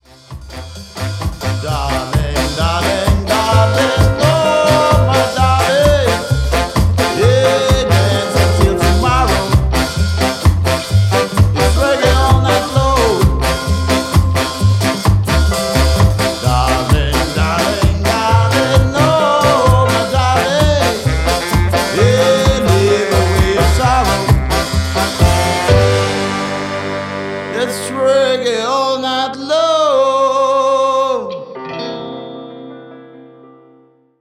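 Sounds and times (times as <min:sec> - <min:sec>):
reggae music: 0:00.0 - 0:33.2.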